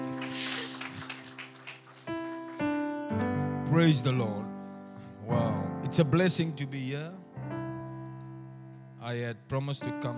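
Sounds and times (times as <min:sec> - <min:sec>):
audience clapping hands: 0:00.0 - 0:03.3
speech: 0:03.2 - 0:04.4, 0:06.0 - 0:07.2, 0:09.0 - 0:10.1.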